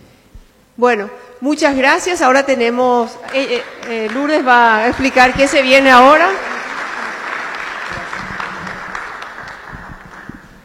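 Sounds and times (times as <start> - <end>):
speech: 0.8 - 6.5
audience applause: 3.3 - 10.6.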